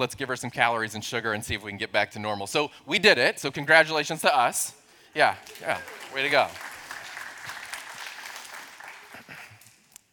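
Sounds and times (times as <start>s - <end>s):
speech: 0.0s - 6.7s
people clapping: 5.2s - 10.0s.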